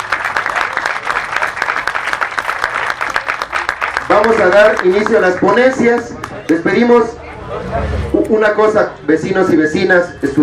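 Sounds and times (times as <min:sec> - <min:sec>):
audience applause: 0:00.0 - 0:06.6
speech: 0:04.1 - 0:10.4.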